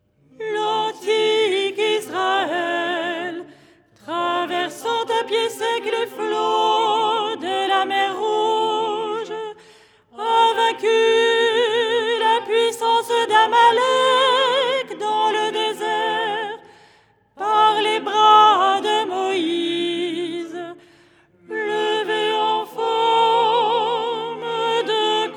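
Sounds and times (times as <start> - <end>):
soprano singing: 0.3 - 16.7, 17.4 - 20.8, 21.4 - 25.3.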